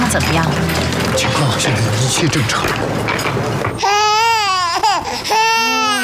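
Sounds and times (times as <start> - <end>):
speech: 0.1 - 4.2
infant crying loudly in wailing bursts: 3.8 - 6.0.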